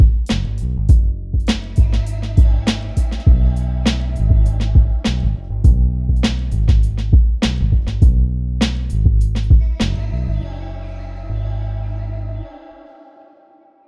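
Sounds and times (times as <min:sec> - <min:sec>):
music beat: 0:00.0 - 0:09.8.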